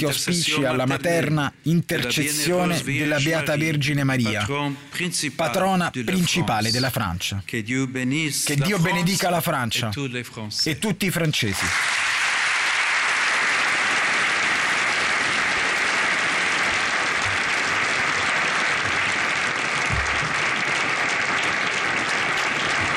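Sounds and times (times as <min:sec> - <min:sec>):
speech: 0:00.0 - 0:12.0
applause of authorities in the Salone delle Feste dell'Eliseo: 0:11.6 - 0:22.9.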